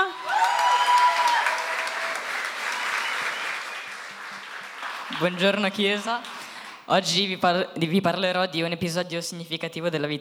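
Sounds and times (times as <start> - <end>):
audience applause: 0.1 - 5.6
speech: 5.2 - 10.1.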